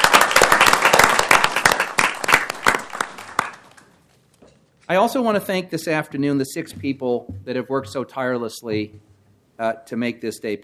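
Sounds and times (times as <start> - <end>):
audience applause: 0.0 - 3.7
speech: 4.9 - 10.6.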